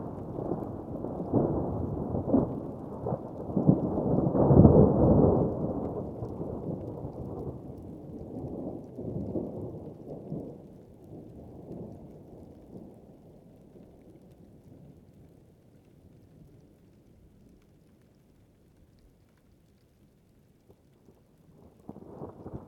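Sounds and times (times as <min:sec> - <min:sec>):
thunderstorm on top of Chacaltaya mountain at 5300m in Bolivia: 0:00.0 - 0:13.0, 0:21.6 - 0:22.6.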